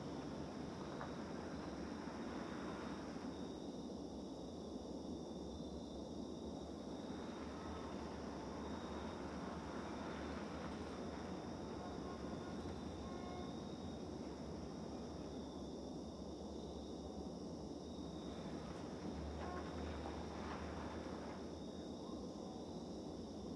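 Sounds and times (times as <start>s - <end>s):
ambience: 0.0s - 23.4s.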